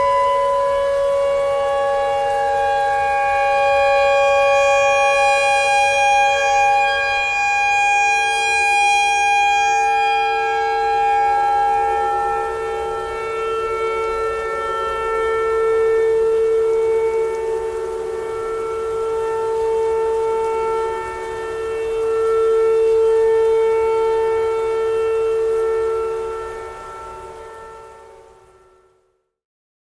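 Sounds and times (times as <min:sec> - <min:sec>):
clarinet notes: 0:00.0 - 0:22.1
tornado siren: 0:00.0 - 0:29.2.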